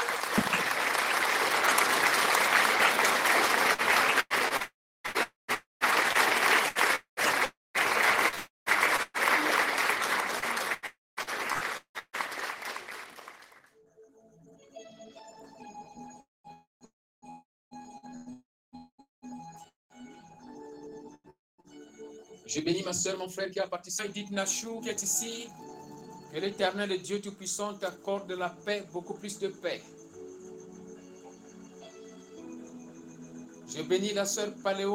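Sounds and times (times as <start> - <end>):
audience applauding: 0.0 - 13.7
speech: 22.5 - 25.6, 26.3 - 29.9, 33.8 - 34.9.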